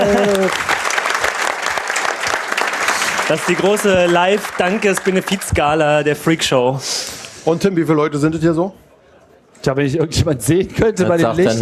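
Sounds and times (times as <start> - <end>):
live audience applause: 0.0 - 5.8
speech: 3.3 - 8.8, 9.6 - 11.6.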